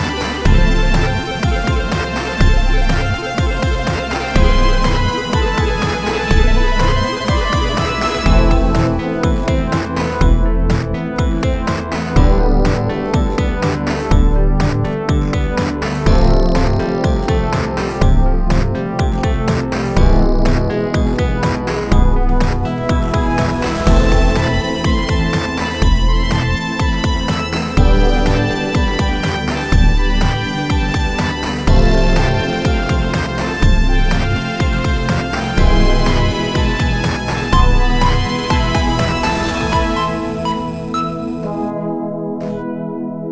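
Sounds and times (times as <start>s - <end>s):
simple 8-bit retro chiptune music track: 0.0s - 43.2s.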